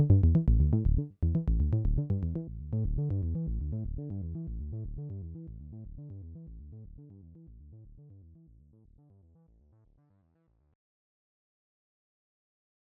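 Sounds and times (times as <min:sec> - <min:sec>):
synth bass through resonators: 0:00.0 - 0:09.9.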